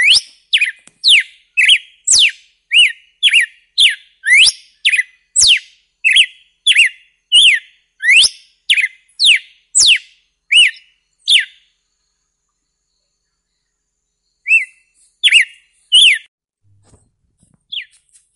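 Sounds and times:
red-cowled cardinal whistled song: 0.0 - 11.8, 14.2 - 16.3, 17.7 - 18.0.

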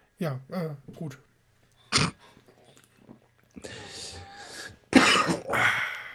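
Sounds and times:
speech: 0.2 - 1.3
person coughing: 4.9 - 5.9.

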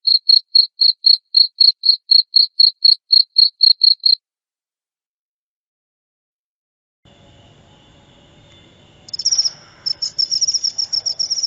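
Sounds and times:
cricket chirping: 0.0 - 4.2, 7.1 - 11.4.

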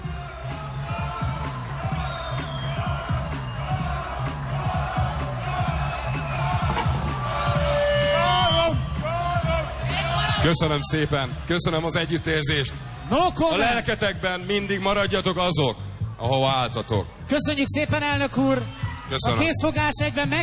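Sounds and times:
crowd applauding the political opposition: 0.0 - 10.8
crowd cheering and shouting: 0.0 - 20.4
whistles from crowd: 1.2 - 4.0, 6.1 - 9.5
speech: 10.4 - 20.4.

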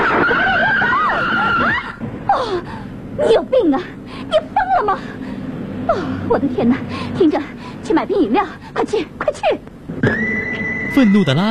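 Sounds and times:
tires squealing: 0.0 - 2.0, 10.0 - 11.4
speech: 2.4 - 5.2, 5.9 - 11.4.

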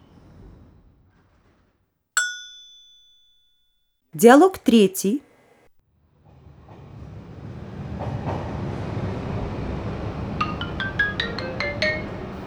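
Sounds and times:
bright ringing chime-like tones: 2.2 - 3.0
speech: 4.1 - 5.3
train rumbling at railway platform 3: 7.6 - 12.4.

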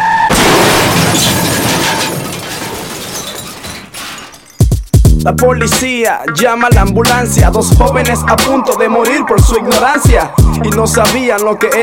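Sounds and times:
car crashing into a wall: 0.3 - 4.6
glass shattering: 0.3 - 5.1
scraping rattling debris: 0.3 - 5.1
metal clank: 0.4 - 4.9
speech: 5.2 - 11.8.

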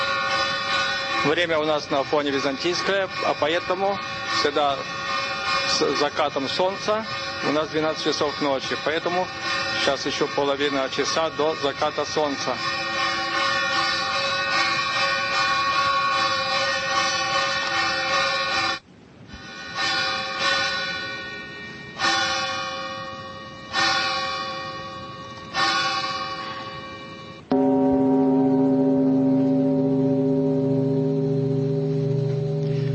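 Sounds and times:
13-ton monastery bell tolling: 0.0 - 18.9, 19.5 - 32.9
speech: 1.2 - 5.0, 5.7 - 12.8.

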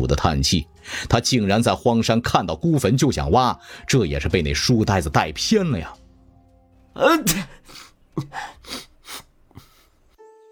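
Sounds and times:
speech: 0.0 - 6.0, 7.0 - 8.8
breathy gasps: 0.8 - 1.1, 3.6 - 3.9, 7.3 - 10.0
person sneezing: 7.0 - 9.9.

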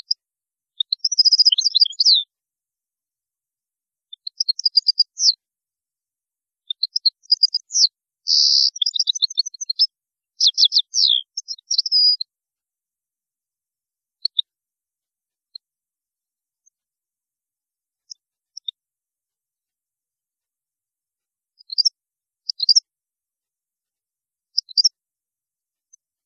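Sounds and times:
European goldfinch song: 0.0 - 2.3, 4.0 - 5.4, 6.6 - 12.3, 14.2 - 14.5, 18.0 - 18.8, 21.5 - 22.9, 24.5 - 25.0.

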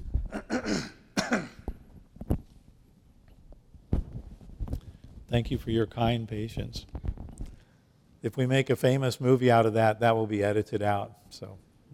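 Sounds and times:
person coughing: 0.3 - 1.7
speech: 5.3 - 7.0, 8.2 - 11.7.

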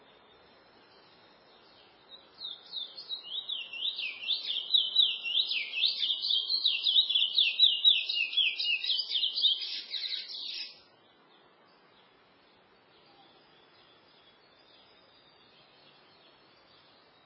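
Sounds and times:
chestnut-bellied seed finch singing: 1.6 - 10.8.

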